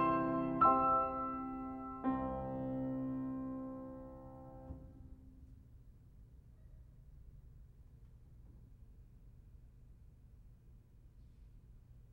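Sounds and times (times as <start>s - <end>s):
piano etude in C major: 0.0s - 5.3s.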